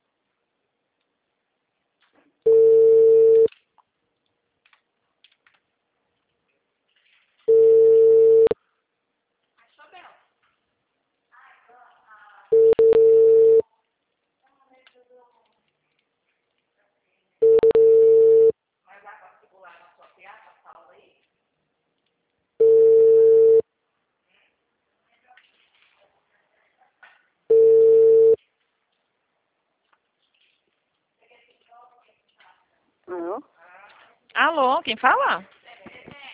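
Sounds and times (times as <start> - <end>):
phone line ringback tone of a call to her sister: 2.5 - 3.5, 7.5 - 8.6, 12.5 - 13.6, 17.4 - 18.5, 22.6 - 23.6, 27.5 - 28.4
speech: 34.5 - 35.6.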